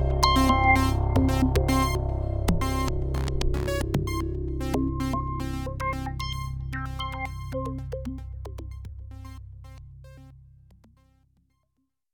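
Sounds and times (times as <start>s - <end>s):
synthesizer sequence solo: 0.0s - 10.3s.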